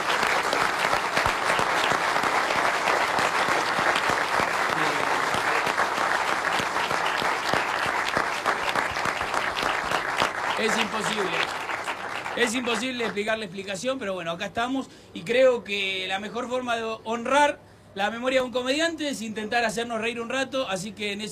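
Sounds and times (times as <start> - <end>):
audience applause: 0.0 - 13.3
speech: 10.6 - 11.5, 12.4 - 21.3.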